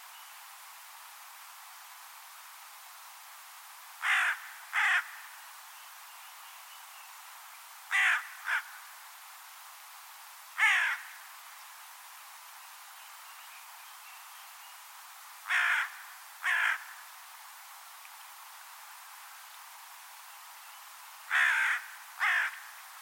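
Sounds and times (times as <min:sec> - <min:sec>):
bird cawing: 0:04.0 - 0:05.3, 0:07.9 - 0:08.8, 0:10.6 - 0:11.2, 0:15.5 - 0:17.0, 0:21.3 - 0:22.8.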